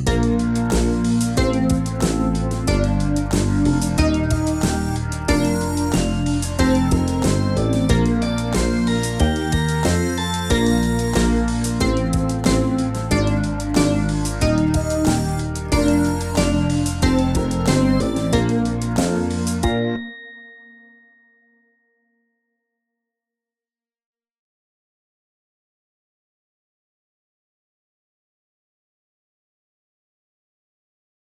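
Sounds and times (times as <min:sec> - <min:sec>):
trombone and trumpet: 0:00.1 - 0:19.8.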